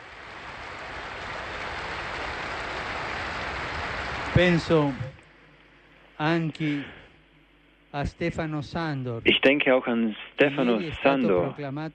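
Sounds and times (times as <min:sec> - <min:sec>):
large crowd sustained applause: 0:00.0 - 0:05.0
speech: 0:04.4 - 0:05.0, 0:06.2 - 0:07.0, 0:07.9 - 0:11.9.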